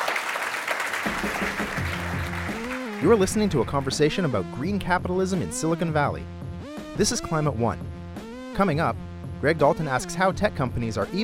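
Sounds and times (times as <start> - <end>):
round of applause: 0.0 - 4.0
speech: 3.0 - 6.4, 7.0 - 7.9, 8.6 - 11.2.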